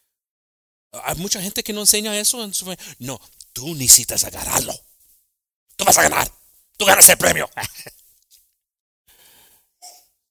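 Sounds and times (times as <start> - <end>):
speech: 0.9 - 4.9, 5.8 - 8.0
sneeze: 4.4 - 4.8, 5.8 - 7.9.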